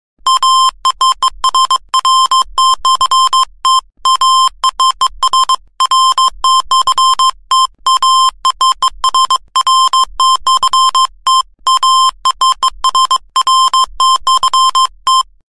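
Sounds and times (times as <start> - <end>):
morse code beeps: 0.2 - 15.4.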